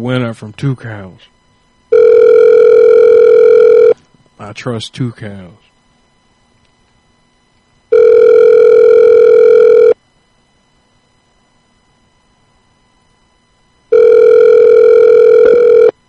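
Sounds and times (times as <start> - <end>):
speech: 0.0 - 1.4, 4.4 - 5.6
outgoing phone call ringback tones: 1.9 - 4.0, 7.9 - 10.0, 13.9 - 16.0.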